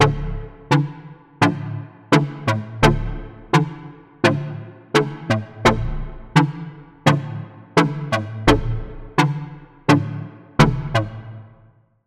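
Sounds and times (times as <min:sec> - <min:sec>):
Sylenth1 synth pluck: 0:00.0 - 0:11.3.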